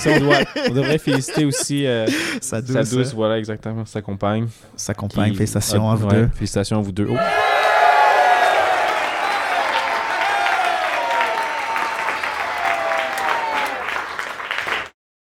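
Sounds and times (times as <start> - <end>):
laughter: 0.0 - 2.7
speech: 0.0 - 7.6
crowd cheering and whoops: 7.1 - 14.4
crowd applause: 7.2 - 15.0.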